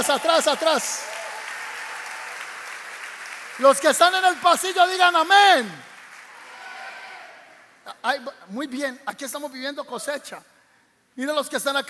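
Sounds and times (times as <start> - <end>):
speech: 0.0 - 1.2, 3.6 - 5.9, 7.9 - 10.5, 11.2 - 11.8
audience applause: 0.0 - 7.4.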